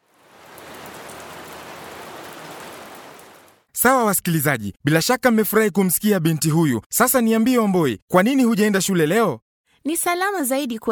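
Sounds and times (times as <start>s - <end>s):
heavy rain falling: 0.0s - 3.7s
speech: 3.8s - 10.9s.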